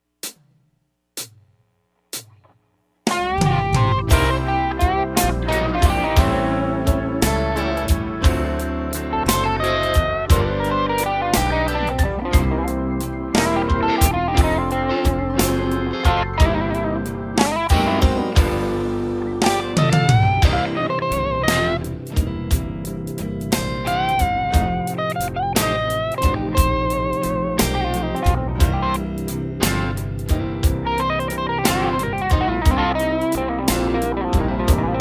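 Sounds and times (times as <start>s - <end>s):
slow blues: 3.1s - 35.0s.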